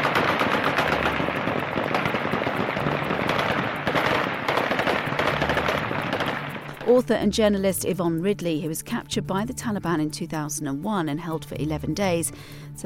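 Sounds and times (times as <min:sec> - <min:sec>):
celebratory Kalashnikov rifle gunfire: 0:00.0 - 0:07.0
speech: 0:06.9 - 0:12.8.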